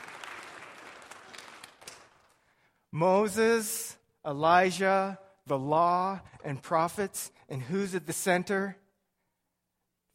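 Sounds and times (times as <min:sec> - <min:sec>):
audience applause: 0:00.0 - 0:02.4
speech: 0:02.9 - 0:08.8.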